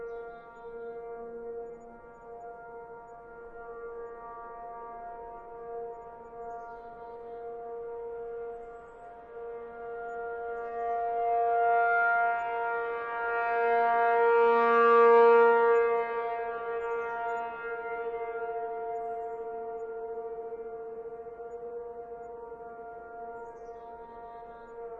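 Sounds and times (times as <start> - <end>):
tornado siren test: 0.0 - 4.6, 7.1 - 24.9.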